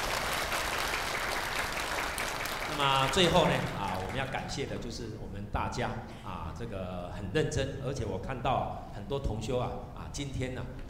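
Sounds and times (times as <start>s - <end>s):
audience applause: 0.0s - 4.4s
speech: 2.8s - 10.8s.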